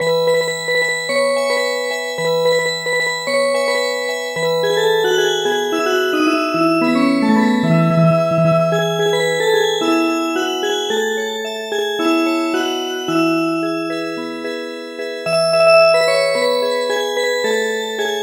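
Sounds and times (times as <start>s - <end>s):
music box: 0.0s - 18.2s.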